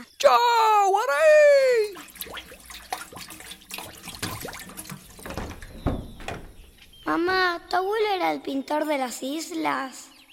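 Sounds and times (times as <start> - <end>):
speech: 0.2 - 1.4, 7.1 - 10.1
flowing river water: 1.7 - 7.3.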